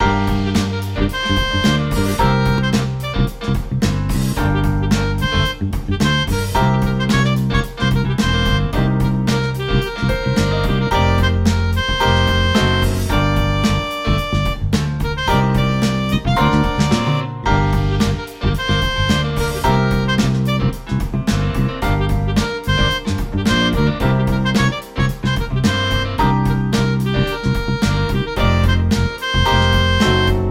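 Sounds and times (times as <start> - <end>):
funk marching music: 0.0 - 30.4.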